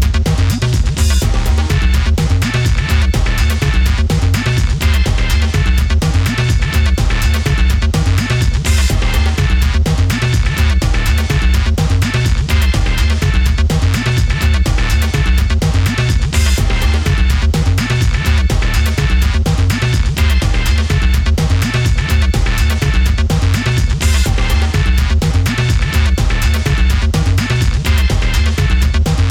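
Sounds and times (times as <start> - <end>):
techno music: 0.0 - 29.3.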